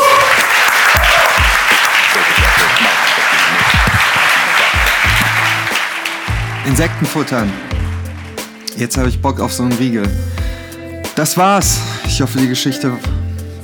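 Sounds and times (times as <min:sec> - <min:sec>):
audience applause: 0:00.0 - 0:08.6
speech: 0:06.7 - 0:07.8, 0:08.8 - 0:10.4, 0:11.2 - 0:13.6.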